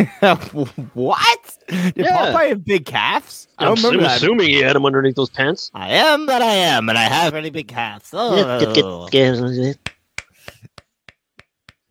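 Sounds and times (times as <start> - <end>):
laughter: 0.0 - 2.8, 8.2 - 9.3
speech: 0.0 - 9.8
hand clapping: 9.8 - 11.9.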